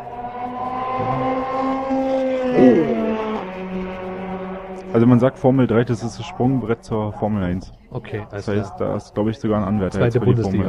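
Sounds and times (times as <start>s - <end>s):
Mini Cooper race car engines passing on a circuit in a cup race: 0.0s - 7.0s
speech: 4.9s - 10.6s.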